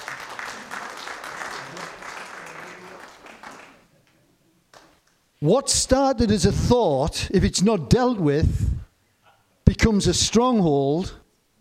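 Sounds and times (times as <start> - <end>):
audience clapping: 0.0 - 5.1
speech: 5.4 - 8.8, 9.8 - 11.2.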